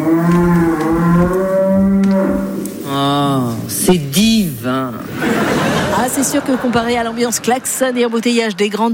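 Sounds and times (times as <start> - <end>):
cows mooing in the countryside: 0.0 - 3.6
laughter: 5.0 - 8.3
speech: 6.2 - 8.9.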